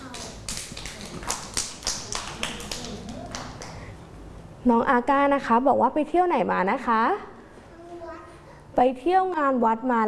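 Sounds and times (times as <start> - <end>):
hand clapping: 0.0 - 3.9
speech: 4.6 - 7.3, 8.8 - 10.0.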